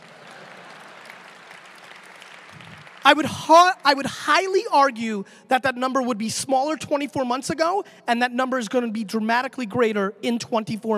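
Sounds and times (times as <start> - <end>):
audience applause: 0.0 - 3.2
speech: 3.0 - 10.9.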